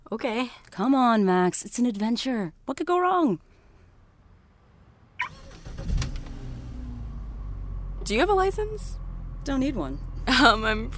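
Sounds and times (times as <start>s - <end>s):
speech: 0.1s - 3.5s, 8.1s - 10.9s
car engine cranking and catching: 4.2s - 10.9s.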